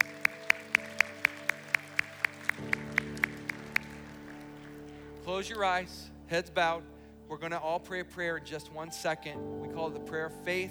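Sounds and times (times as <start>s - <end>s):
audience applauding, hand clapping: 0.0s - 6.1s
speech: 5.3s - 10.6s.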